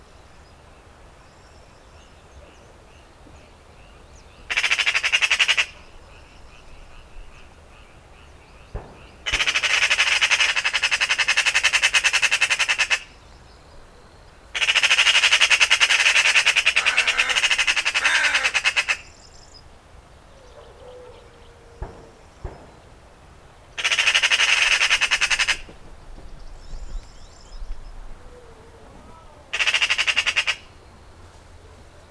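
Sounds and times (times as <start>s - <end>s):
Eurasian Magpie rattling chatter: 4.5s - 5.8s, 9.2s - 13.1s, 14.6s - 19.0s, 23.8s - 25.7s, 29.5s - 30.6s.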